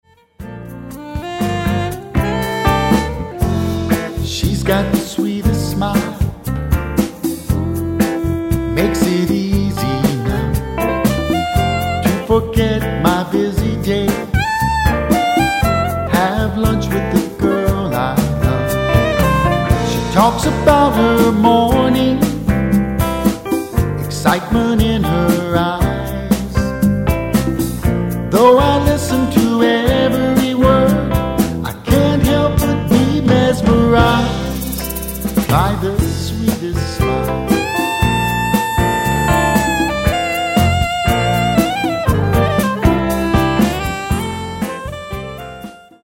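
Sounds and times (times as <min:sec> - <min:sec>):
tropical jazz music: 0:00.1 - 0:46.0.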